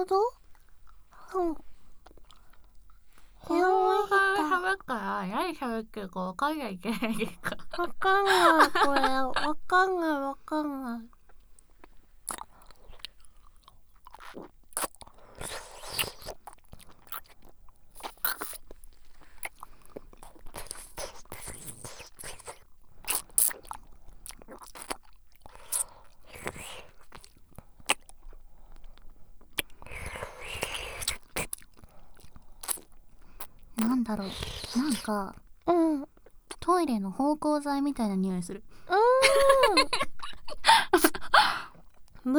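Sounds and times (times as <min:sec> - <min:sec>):
speech: 0:00.0 - 0:00.4, 0:01.3 - 0:01.7, 0:03.4 - 0:11.2, 0:34.1 - 0:35.4, 0:36.7 - 0:39.1
laughter: 0:06.9 - 0:09.7, 0:39.0 - 0:41.3
crunchy chewing and biting: 0:11.3 - 0:35.0.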